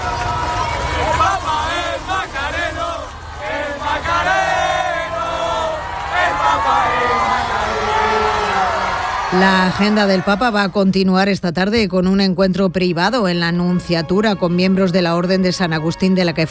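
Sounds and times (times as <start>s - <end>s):
large crowd of young voices chanting and shouting: 0.0s - 10.8s
speech: 9.3s - 16.4s.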